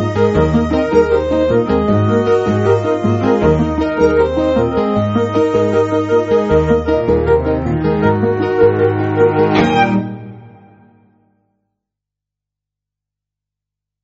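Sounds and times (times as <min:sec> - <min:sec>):
music beat: 0:00.0 - 0:10.8.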